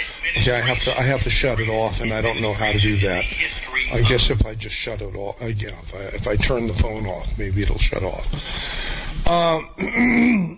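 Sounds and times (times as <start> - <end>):
speech: 0.3 - 10.5
person clearing throat: 9.3 - 10.5.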